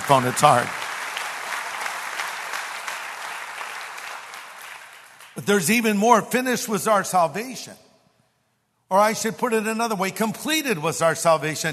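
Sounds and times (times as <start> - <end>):
audience clapping: 0.0 - 5.7
speech: 0.1 - 0.8, 5.4 - 7.8, 8.9 - 11.7.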